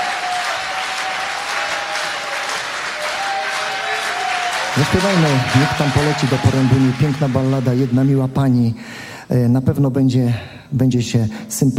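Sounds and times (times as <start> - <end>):
audience applause: 0.0 - 8.6
speech: 4.8 - 11.7.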